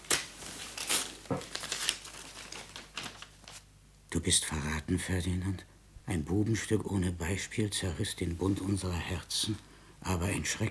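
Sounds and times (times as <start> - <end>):
paper crinkling and tearing as a sealed letter is broken open: 0.0 - 3.6
speech: 4.2 - 10.7.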